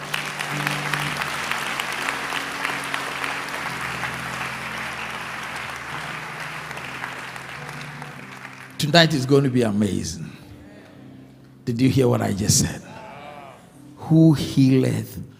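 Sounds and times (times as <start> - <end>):
audience clapping: 0.0 - 9.8
speech: 8.9 - 10.4, 11.7 - 12.9, 14.1 - 15.3.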